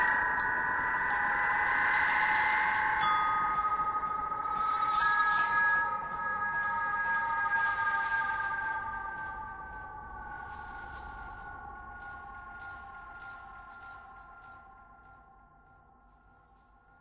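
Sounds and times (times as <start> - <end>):
glockenspiel: 0.0 - 9.4.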